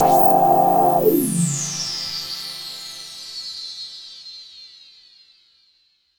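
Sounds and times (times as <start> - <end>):
epic synth pad for UK house and electro: 0.0 - 2.0.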